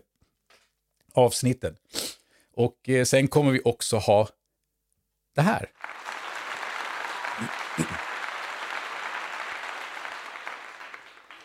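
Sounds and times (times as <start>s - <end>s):
speech: 1.2s - 1.9s, 2.6s - 4.4s, 5.4s - 6.0s, 7.4s - 7.6s
applause: 5.7s - 11.4s.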